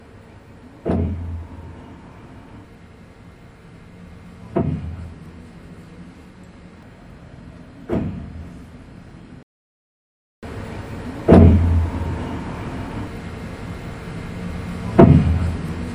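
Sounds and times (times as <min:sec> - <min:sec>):
water hammer in pipes: 0:00.8 - 0:01.9, 0:04.4 - 0:05.2, 0:11.2 - 0:12.8, 0:14.8 - 0:15.8.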